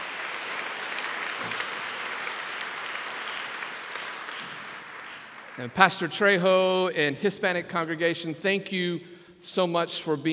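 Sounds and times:
crowd hand clapping: 0.0 - 6.4
speech: 5.6 - 10.3.

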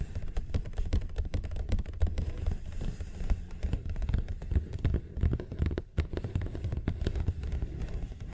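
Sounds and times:
paper bag tapping: 0.0 - 8.2.

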